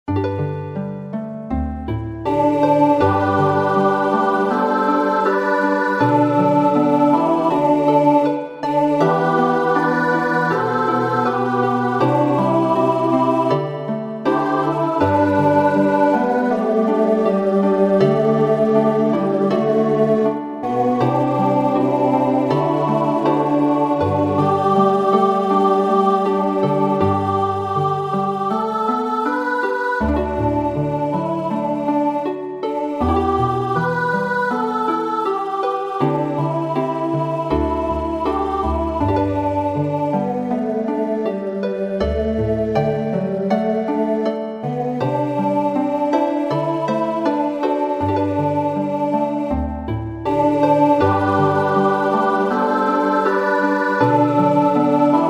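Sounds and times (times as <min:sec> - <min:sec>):
folk tune: 0:00.1 - 0:55.2.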